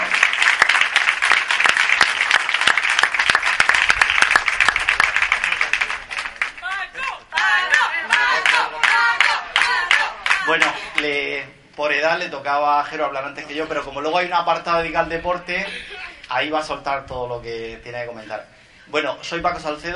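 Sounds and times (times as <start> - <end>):
loud applause from audience: 0.0 - 11.1
voices and cheering: 5.3 - 11.0
speech: 12.2 - 19.9.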